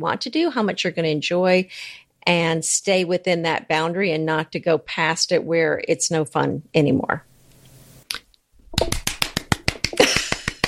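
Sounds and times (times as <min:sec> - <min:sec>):
speech: 0:00.0 - 0:07.3
hand clapping: 0:08.7 - 0:10.6.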